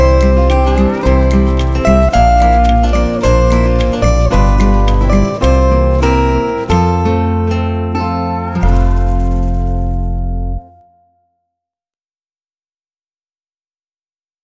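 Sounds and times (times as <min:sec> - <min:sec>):
instrumental music: 0:00.0 - 0:11.1.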